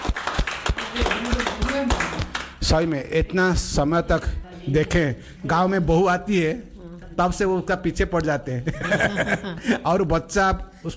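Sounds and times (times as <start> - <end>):
audience clapping: 0.0 - 2.8
speech: 2.6 - 10.9
laughter: 8.6 - 10.0.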